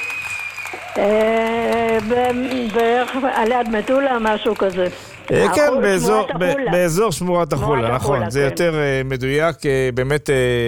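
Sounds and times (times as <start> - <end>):
applause: 0.0 - 6.0
speech: 1.0 - 10.6.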